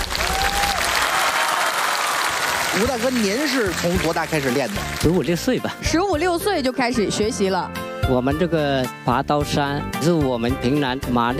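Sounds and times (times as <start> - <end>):
audience applause for a performer who climbed a blade ladder: 0.0 - 5.5
speech: 2.8 - 11.3.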